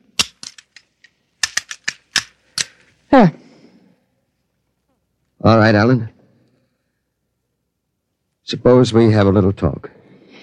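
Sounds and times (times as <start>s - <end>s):
pistol being reassembled with firing pin going back in: 0.1s - 2.9s
speech: 3.1s - 3.4s, 5.5s - 6.1s, 8.5s - 10.0s.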